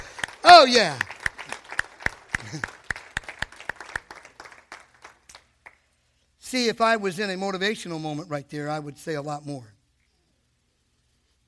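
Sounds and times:
audience giving round of applause: 0:00.0 - 0:05.5
speech: 0:00.6 - 0:01.1, 0:02.5 - 0:02.7, 0:06.5 - 0:09.8.

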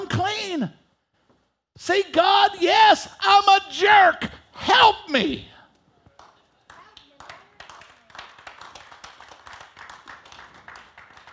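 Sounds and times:
speech: 0:00.6 - 0:00.8, 0:01.8 - 0:05.5
crowd applauding: 0:06.7 - 0:11.3.

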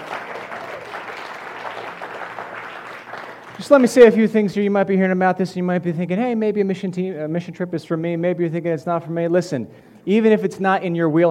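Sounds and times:
crowd applauding: 0:00.0 - 0:04.1
speech: 0:03.6 - 0:11.2.

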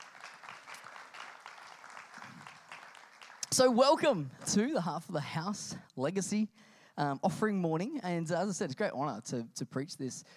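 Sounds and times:
audience clapping: 0:00.0 - 0:04.4
speech: 0:03.5 - 0:10.3.

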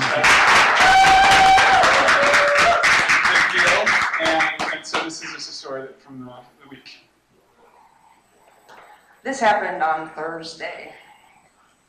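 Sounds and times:
audience clapping: 0:00.0 - 0:05.4
speech: 0:05.2 - 0:07.0, 0:09.2 - 0:11.0.

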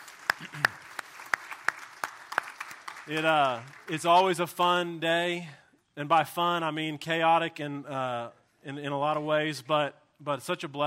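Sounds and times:
round of applause handclaps: 0:00.0 - 0:04.3
speech: 0:03.1 - 0:10.8.

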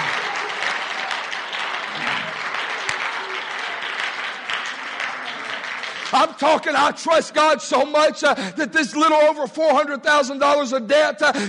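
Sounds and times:
audience applauding: 0:00.0 - 0:06.9
speech: 0:06.1 - 0:11.4.

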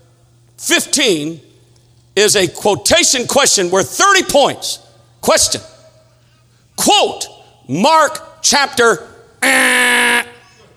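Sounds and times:
speech: 0:00.6 - 0:01.5, 0:02.2 - 0:05.7, 0:06.8 - 0:09.8
person imitating a quiz buzzer: 0:09.4 - 0:10.7.

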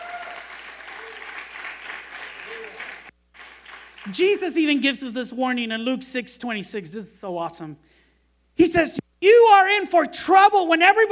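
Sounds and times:
audience round of applause: 0:00.0 - 0:04.1
speech: 0:04.1 - 0:08.0, 0:08.6 - 0:09.0, 0:09.6 - 0:11.1.

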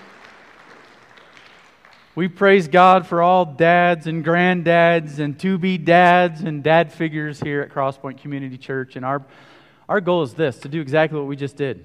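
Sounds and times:
audience applause: 0:00.0 - 0:02.2
speech: 0:02.2 - 0:11.8.

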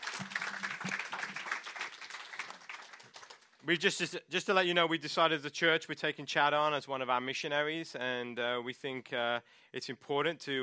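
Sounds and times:
audience applause: 0:00.0 - 0:03.6
speech: 0:03.7 - 0:10.6.

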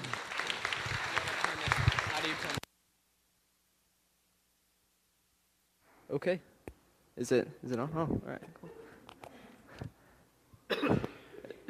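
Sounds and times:
audience applause: 0:00.0 - 0:02.6
speech: 0:06.1 - 0:06.5, 0:07.2 - 0:08.8.

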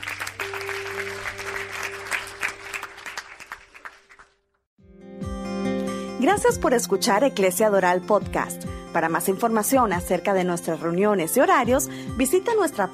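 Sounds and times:
audience applauding: 0:00.0 - 0:04.5
speech: 0:06.2 - 0:12.9.

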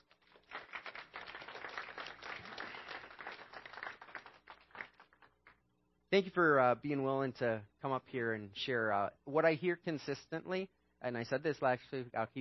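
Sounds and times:
audience applause: 0:00.0 - 0:05.6
speech: 0:06.1 - 0:12.3.

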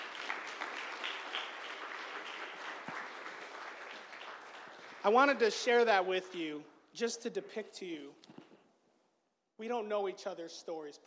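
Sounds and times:
audience applause: 0:00.0 - 0:05.4
speech: 0:05.0 - 0:08.4, 0:09.6 - 0:11.0.

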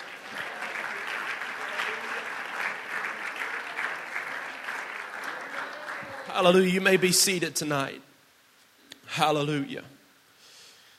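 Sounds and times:
seated audience clapping: 0:00.0 - 0:07.1
speech: 0:06.4 - 0:08.1, 0:09.2 - 0:10.0.

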